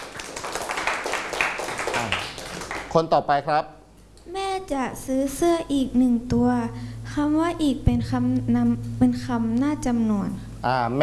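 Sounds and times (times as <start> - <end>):
classmates clapping for a friend during a Thai-language lesson: 0.0 - 3.1
speech: 2.9 - 11.0.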